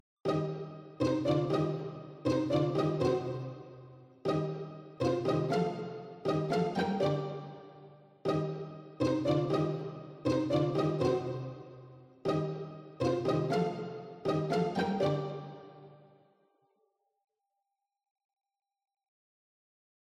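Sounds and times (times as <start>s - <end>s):
pizzicato strings: 0.3s - 16.1s.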